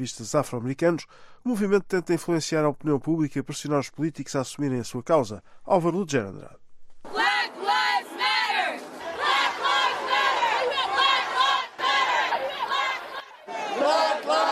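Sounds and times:
speech: 0.0 - 7.6
protest crowd chanting: 7.1 - 14.4.

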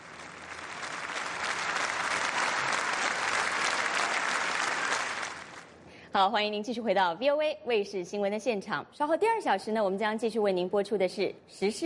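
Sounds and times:
large audience applause: 0.0 - 5.7
speech: 6.2 - 11.8.

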